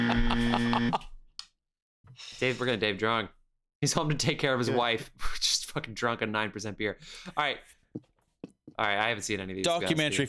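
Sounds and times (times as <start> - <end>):
loud harsh buzzer: 0.0 - 1.0
speech: 2.4 - 8.1, 8.7 - 10.2.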